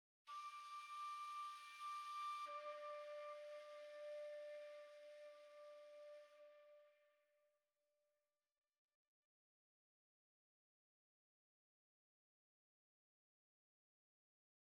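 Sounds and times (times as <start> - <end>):
flute: 0.3 - 7.3.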